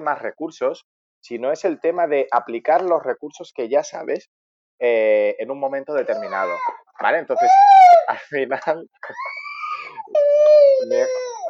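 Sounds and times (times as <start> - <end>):
speech: 0.0 - 9.4, 10.1 - 11.3
child shouting while playing: 6.1 - 6.8
laughter: 8.1 - 10.0.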